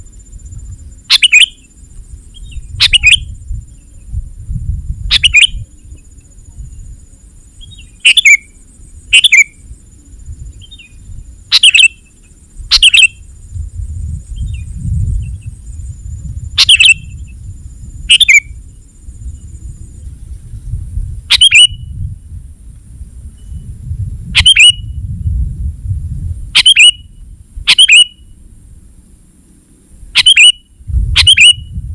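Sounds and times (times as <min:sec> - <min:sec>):
low rumbling noise: 0:00.0 - 0:31.9
sooty-headed bulbul calling: 0:01.1 - 0:01.7, 0:02.4 - 0:03.3, 0:05.1 - 0:05.6, 0:07.6 - 0:09.6, 0:11.5 - 0:12.0, 0:18.1 - 0:18.6, 0:27.7 - 0:28.2, 0:30.2 - 0:31.7.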